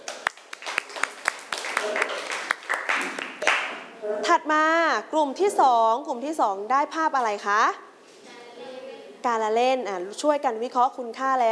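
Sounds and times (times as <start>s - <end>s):
students clapping for classmates: 0.0s - 3.8s
speech: 4.3s - 7.9s, 9.2s - 11.5s.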